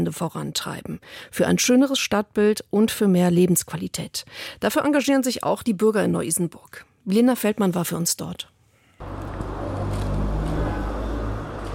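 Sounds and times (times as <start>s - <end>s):
speech: 0.0s - 9.3s
cars rushing past on a busy street: 9.0s - 11.7s.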